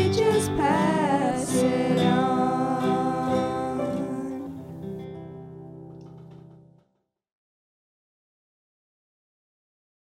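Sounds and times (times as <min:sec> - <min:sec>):
person singing: 0:00.0 - 0:05.0
piano: 0:00.0 - 0:06.8
guitar: 0:00.0 - 0:06.9.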